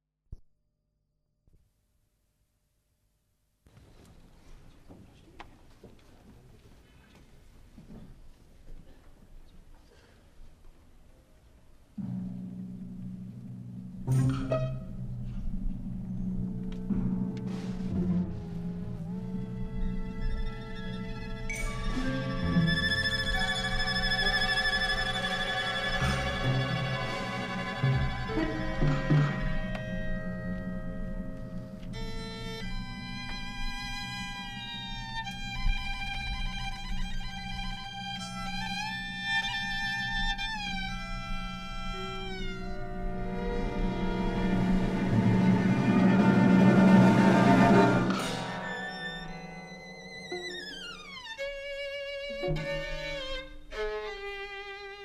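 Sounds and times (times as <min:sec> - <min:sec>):
violin concerto: 0:14.1 - 0:15.1, 0:16.4 - 0:55.0.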